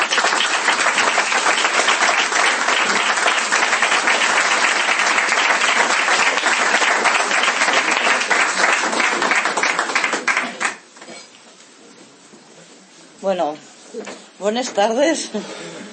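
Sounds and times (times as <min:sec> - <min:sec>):
audience applause: 0:00.0 - 0:11.0
speech: 0:13.3 - 0:15.7.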